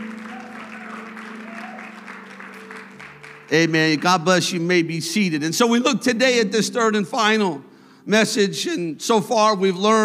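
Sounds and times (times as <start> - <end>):
audience applause: 0.0 - 4.5
speech: 3.5 - 10.0.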